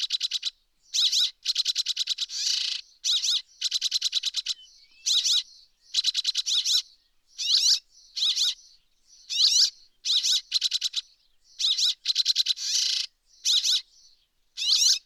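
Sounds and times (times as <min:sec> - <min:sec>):
rock sparrow buzzy chatter: 0:00.0 - 0:15.0.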